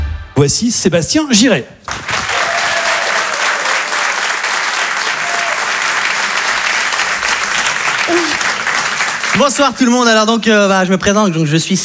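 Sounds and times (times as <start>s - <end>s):
speech: 0.4s - 2.0s, 9.5s - 11.8s
comedy club audience applause: 1.9s - 10.0s.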